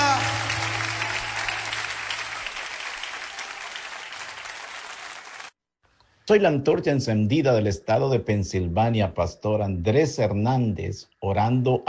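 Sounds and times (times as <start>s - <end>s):
audience clapping hands: 0.0s - 5.6s
speech: 6.3s - 11.8s.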